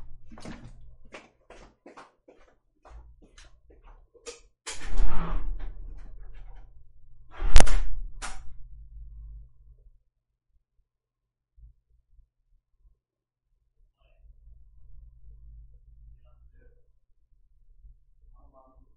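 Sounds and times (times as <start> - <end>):
door being opened: 4.7 - 6.7, 7.3 - 8.6.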